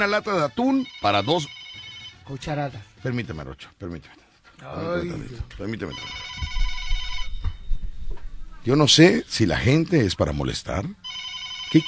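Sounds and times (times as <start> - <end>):
speech: 0.0 - 1.6, 2.3 - 6.5, 8.6 - 11.0
telephone ringing: 0.0 - 2.3, 5.9 - 7.6, 11.0 - 11.8.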